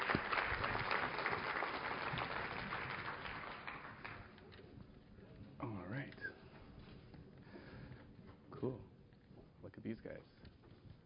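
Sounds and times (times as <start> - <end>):
crowd applause: 0.0 - 4.4
speech: 8.6 - 8.9, 9.9 - 10.4.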